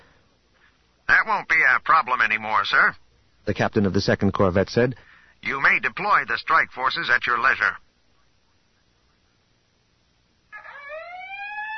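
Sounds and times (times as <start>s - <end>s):
speech: 1.3s - 7.8s
howling alarm siren over an intercom: 10.6s - 11.7s.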